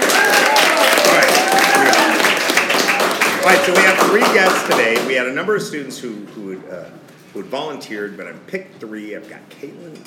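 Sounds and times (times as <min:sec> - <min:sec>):
studio audience applause from class of 2023 students: 0:00.0 - 0:05.2
speech: 0:03.4 - 0:10.0.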